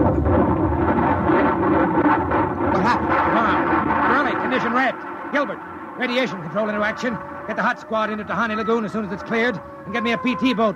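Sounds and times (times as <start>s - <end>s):
bomb explosion: 0.0s - 8.2s
speech: 5.3s - 10.7s.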